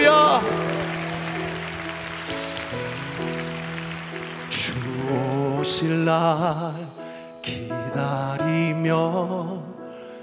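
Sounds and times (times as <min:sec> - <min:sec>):
audience applause: 0:00.0 - 0:06.1
speech: 0:05.8 - 0:09.7.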